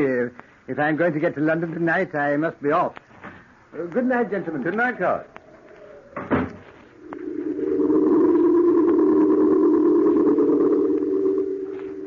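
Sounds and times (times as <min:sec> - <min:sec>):
speech: 0:00.0 - 0:03.1, 0:03.7 - 0:05.4
loud steady low drone: 0:05.2 - 0:12.0
door shutting: 0:06.1 - 0:06.7.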